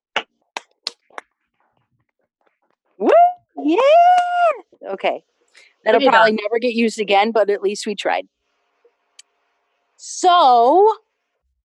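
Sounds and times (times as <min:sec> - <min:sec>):
group clapping hands: 0:00.1 - 0:01.3, 0:04.1 - 0:04.4
speech: 0:03.0 - 0:04.2, 0:04.9 - 0:08.4, 0:10.0 - 0:11.0.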